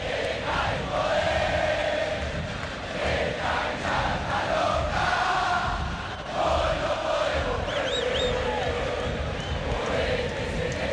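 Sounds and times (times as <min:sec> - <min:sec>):
large football stadium crowd chanting in unison: 0:00.0 - 0:10.9
whistles: 0:07.6 - 0:08.6, 0:09.2 - 0:09.9.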